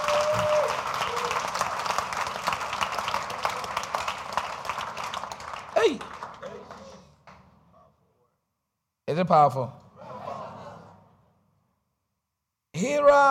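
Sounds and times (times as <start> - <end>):
audience clapping: 0.0 - 7.8
speech: 5.8 - 6.1, 9.2 - 9.8, 12.8 - 13.2
laughter: 10.0 - 11.2.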